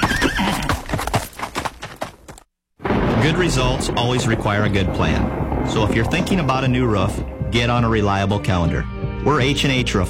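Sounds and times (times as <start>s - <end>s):
horse whinnying: 0.0s - 1.0s
horse hooves clip-clopping: 0.0s - 2.5s
speech: 3.2s - 10.0s.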